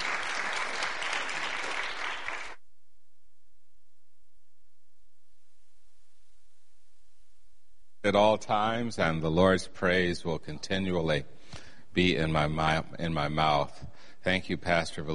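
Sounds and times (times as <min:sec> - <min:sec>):
audience applause welcoming a guest speaker: 0:00.0 - 0:02.6
speech: 0:08.0 - 0:11.4, 0:12.0 - 0:15.1.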